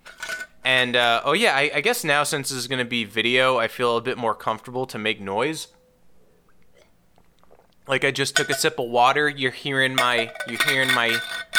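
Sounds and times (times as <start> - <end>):
steel metal water bottle rolling across a surface: 0.0 - 1.0, 8.4 - 11.5
speech: 0.8 - 5.8, 7.9 - 11.5.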